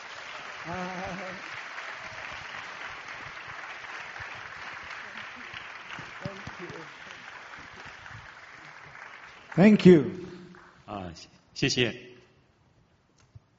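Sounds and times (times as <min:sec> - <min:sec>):
crowd applause welcoming a pastor at a church gathering: 0:00.0 - 0:10.8
speech: 0:00.6 - 0:01.6, 0:09.6 - 0:10.2, 0:11.2 - 0:12.1.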